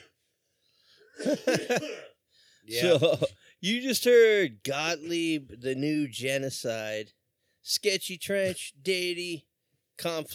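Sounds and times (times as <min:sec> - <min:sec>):
coughing after a bong hit: 0:01.1 - 0:02.2
speech: 0:01.2 - 0:10.3.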